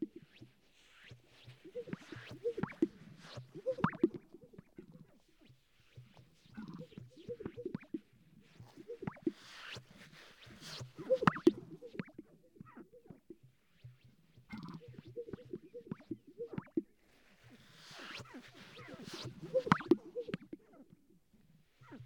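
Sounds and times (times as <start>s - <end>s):
sage-grouse display popping and bubbling: 1.4s - 4.9s, 6.6s - 9.8s, 10.7s - 13.4s, 14.5s - 16.9s, 18.8s - 20.6s.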